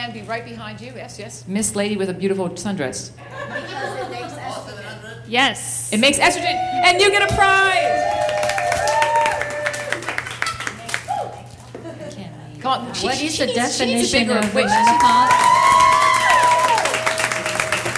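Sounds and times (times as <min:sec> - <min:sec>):
speech: 0:00.0 - 0:08.3, 0:12.6 - 0:15.7
laughter: 0:03.2 - 0:05.3, 0:11.6 - 0:12.4
audience applause: 0:07.4 - 0:11.4, 0:14.4 - 0:17.9.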